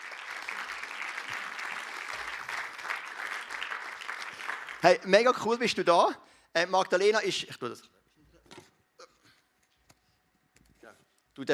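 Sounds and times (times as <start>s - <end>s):
audience applause: 0.0s - 5.1s
speech: 4.8s - 7.9s.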